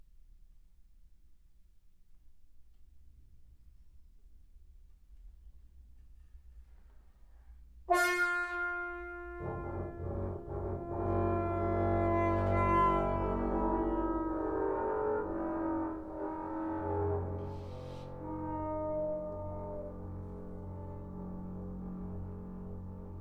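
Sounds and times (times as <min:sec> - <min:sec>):
trombone: 0:07.9 - 0:22.0.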